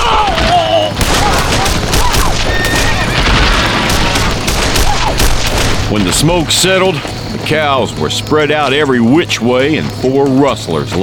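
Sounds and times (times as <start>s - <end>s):
shouting voices: 0.0s - 5.4s
gunshots in a gunfight: 0.0s - 6.4s
speech: 5.9s - 11.0s.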